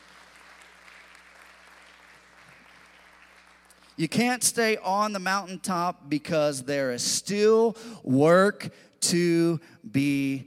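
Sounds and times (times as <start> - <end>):
audience clapping: 0.0 - 4.0
speech: 4.0 - 10.4.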